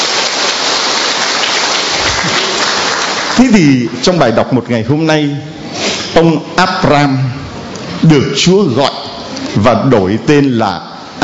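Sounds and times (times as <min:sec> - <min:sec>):
loud round of applause: 0:00.0 - 0:04.0
speech: 0:03.4 - 0:07.4, 0:08.0 - 0:10.9.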